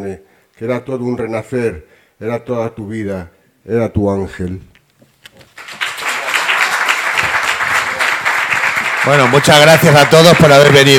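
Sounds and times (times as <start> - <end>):
speech: 0.0 - 4.7, 9.0 - 10.9
audience applause: 5.6 - 10.9.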